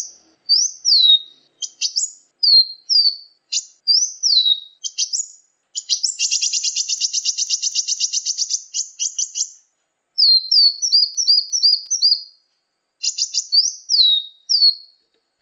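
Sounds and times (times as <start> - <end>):
hummingbird in Muncang: 0.0 - 15.1.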